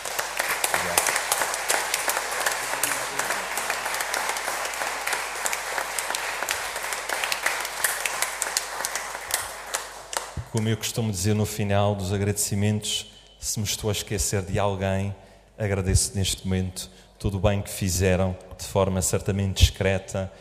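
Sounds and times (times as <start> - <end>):
audience applause: 0.0 - 10.4
speech: 10.5 - 20.3.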